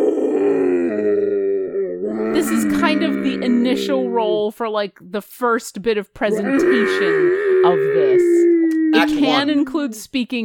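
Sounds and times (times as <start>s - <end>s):
person imitating a roar: 0.0s - 4.5s, 6.3s - 9.6s
speech: 2.4s - 10.4s.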